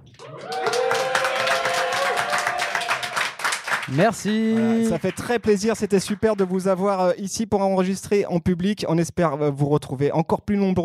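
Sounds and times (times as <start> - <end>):
live crowd clapping: 0.0 - 7.0
person whooping: 0.2 - 3.2
speech: 3.9 - 10.8.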